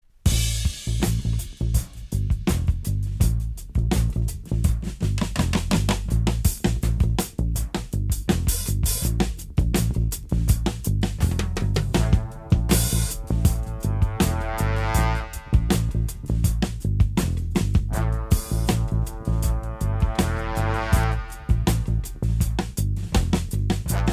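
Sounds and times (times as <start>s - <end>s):
jazz orchestra: 0.3s - 24.1s.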